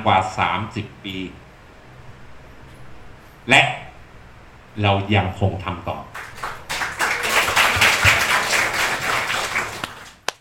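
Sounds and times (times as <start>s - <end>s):
speech: 0.0s - 1.4s, 3.4s - 3.8s, 4.8s - 6.2s
applause: 6.1s - 10.4s.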